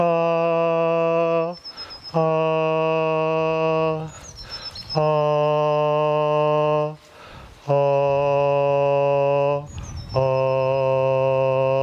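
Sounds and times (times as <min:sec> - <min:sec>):
voice singing held tones in a voice exercise: 0:00.0 - 0:11.8
breathing: 0:01.7 - 0:02.1, 0:04.1 - 0:04.8, 0:07.0 - 0:07.6.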